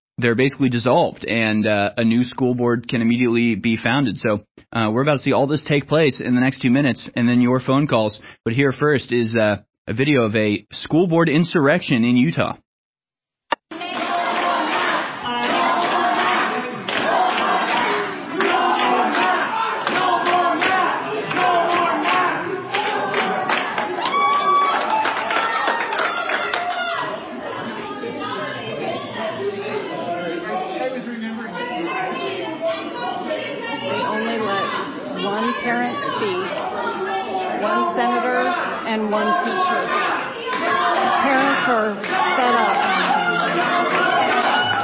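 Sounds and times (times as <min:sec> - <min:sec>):
speech: 0:00.2 - 0:12.6
scattered clapping: 0:13.5 - 0:27.2, 0:39.1 - 0:44.8
crowd chanting no more mask: 0:13.7 - 0:44.8.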